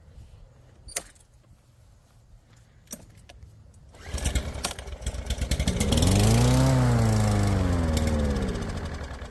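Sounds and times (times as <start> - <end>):
small engine running after priming: 3.9 - 9.2.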